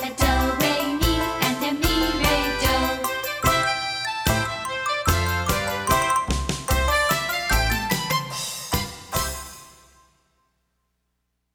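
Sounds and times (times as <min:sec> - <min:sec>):
tapping song: 0:00.1 - 0:08.1.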